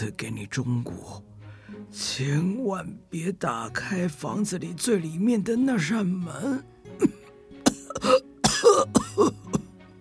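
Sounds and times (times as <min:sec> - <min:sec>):
speech: 0:00.0 - 0:01.3, 0:01.9 - 0:07.2, 0:08.0 - 0:09.4
old man coughing: 0:06.5 - 0:09.8.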